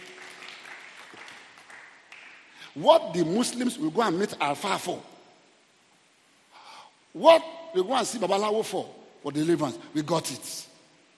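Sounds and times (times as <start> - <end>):
church congregation clapping hands: 0.0 - 2.8
speech: 2.8 - 5.1, 7.2 - 10.7.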